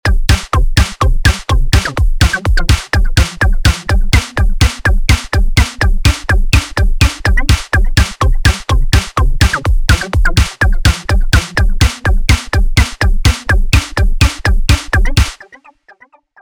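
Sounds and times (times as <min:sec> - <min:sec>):
sample music: 0:00.0 - 0:16.4.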